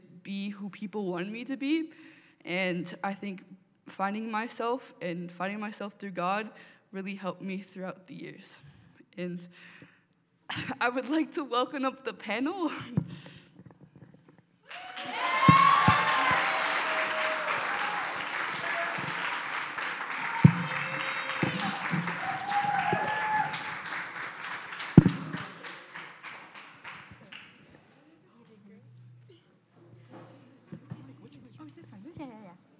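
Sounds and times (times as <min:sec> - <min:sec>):
speech: 0:00.6 - 0:09.9, 0:10.5 - 0:13.3
whoops and cheers: 0:14.7 - 0:23.9
audience applause at a student-led testimony night: 0:14.7 - 0:27.6.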